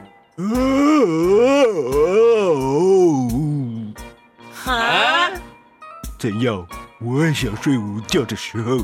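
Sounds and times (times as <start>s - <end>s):
speech: 0.4s - 2.3s, 6.2s - 8.8s
narrator imitating a lion's loud cry: 0.4s - 3.7s.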